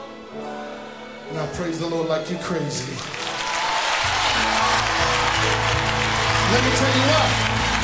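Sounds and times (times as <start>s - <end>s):
speech: 1.3s - 3.2s, 6.5s - 7.6s
audience clapping hands: 2.9s - 7.8s.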